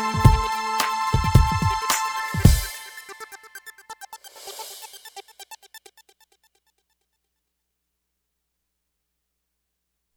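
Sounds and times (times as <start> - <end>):
instrumental music: 0.0 - 5.2.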